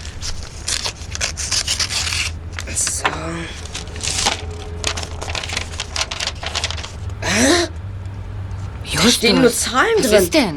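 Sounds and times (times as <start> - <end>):
letter envelope being opened: 0.0 - 2.9, 3.5 - 7.6
speech: 9.0 - 10.5.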